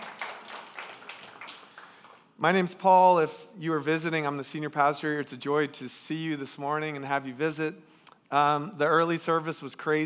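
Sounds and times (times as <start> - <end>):
crowd applause: 0.0 - 2.2
speech: 2.4 - 10.0.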